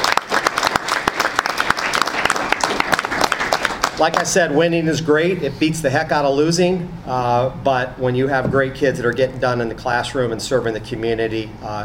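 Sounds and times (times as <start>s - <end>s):
audience applauding: 0.0s - 4.4s
speech: 4.0s - 11.8s.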